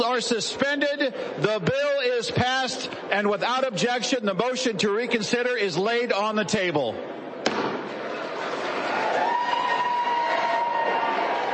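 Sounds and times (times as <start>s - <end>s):
speech: 0.0s - 7.2s
cheering in the chamber: 7.8s - 11.5s.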